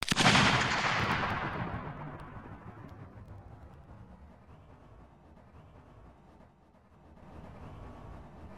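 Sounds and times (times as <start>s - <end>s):
explosion: 0.0s - 4.2s.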